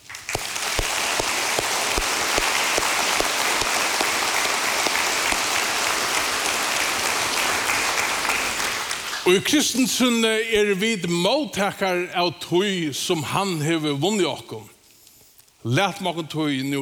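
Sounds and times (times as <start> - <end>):
audience clapping: 0.0 - 9.5
speech: 9.3 - 14.7, 15.6 - 16.8.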